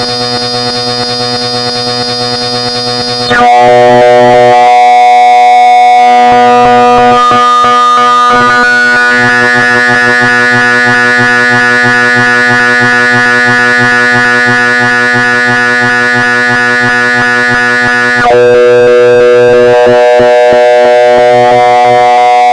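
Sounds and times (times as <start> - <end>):
inharmonic overtones: 0.0 - 22.5.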